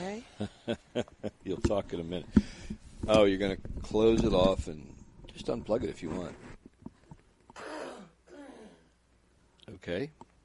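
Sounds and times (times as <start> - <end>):
speech: 0.4 - 6.5, 9.7 - 10.2
harsh raspy throat clearing: 7.6 - 8.9.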